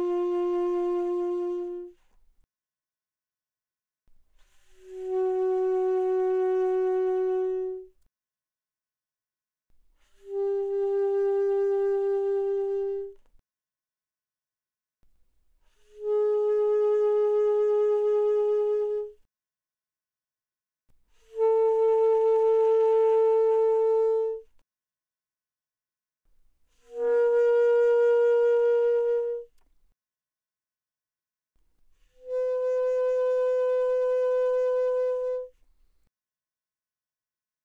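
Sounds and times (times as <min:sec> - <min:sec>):
soft alto saxophone notes with vibrato: 0:00.0 - 0:02.0, 0:04.8 - 0:07.9, 0:10.2 - 0:13.2, 0:16.0 - 0:19.2, 0:21.3 - 0:24.5, 0:26.9 - 0:29.5, 0:32.2 - 0:35.6.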